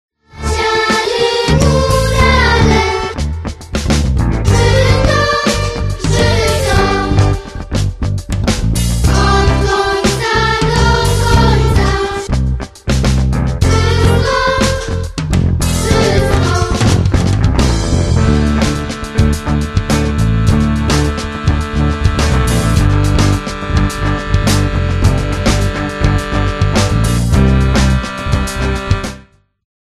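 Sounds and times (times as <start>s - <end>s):
contemporary Polish Górale mountaineer village music: 0.3s - 29.3s.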